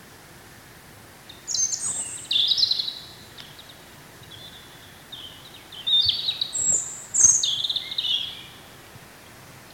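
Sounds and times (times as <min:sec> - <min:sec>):
European robin singing high tinkling and trilling notes: 0:01.3 - 0:08.7.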